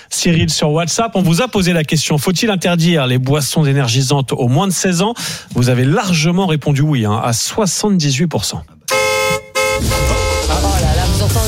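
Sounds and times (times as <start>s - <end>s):
speech: 0.1s - 8.9s
car horn honking in a radio jingle: 8.9s - 11.4s.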